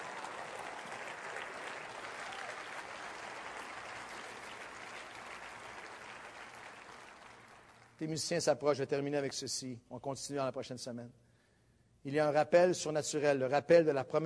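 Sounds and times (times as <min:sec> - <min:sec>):
audience applause: 0:00.0 - 0:08.0
speech: 0:08.0 - 0:11.2, 0:12.0 - 0:14.2.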